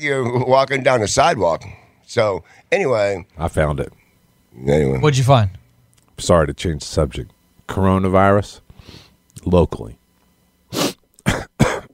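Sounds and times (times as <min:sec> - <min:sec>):
speech: 0:00.0 - 0:04.0, 0:04.6 - 0:05.6, 0:06.2 - 0:10.0
person sneezing: 0:10.7 - 0:11.9.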